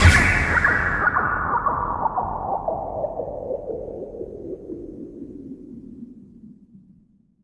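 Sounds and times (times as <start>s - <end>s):
synth production effect: 0.0s - 5.4s.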